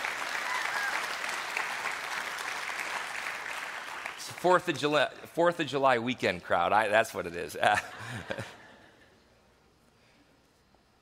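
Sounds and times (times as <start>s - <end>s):
church audience clapping: 0.0s - 5.0s
speech: 4.3s - 8.6s.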